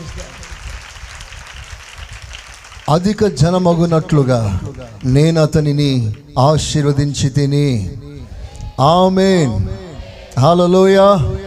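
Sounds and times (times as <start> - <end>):
congregation clapping in a worship service: 0.0 - 6.6
speech: 2.9 - 8.0, 8.8 - 9.8, 10.4 - 11.4.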